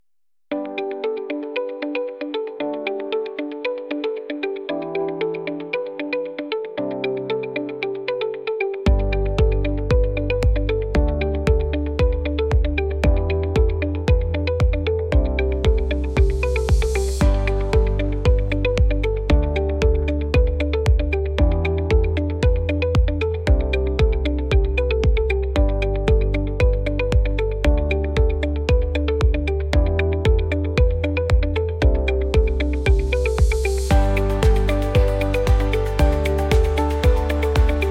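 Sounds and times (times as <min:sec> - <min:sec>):
atmospheric and introspective electronica: 0:00.5 - 0:37.8.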